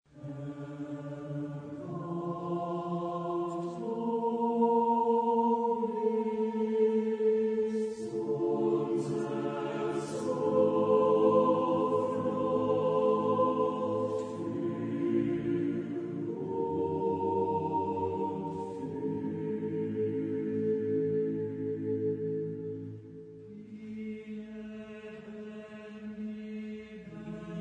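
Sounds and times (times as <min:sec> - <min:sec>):
chorus singing an anthem: 0:00.1 - 0:27.5.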